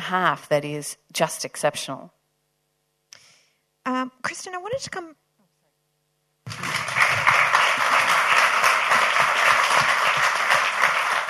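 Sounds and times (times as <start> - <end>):
speech: 0.1 - 2.2, 3.9 - 5.2
spontaneous audience applause: 6.5 - 11.2.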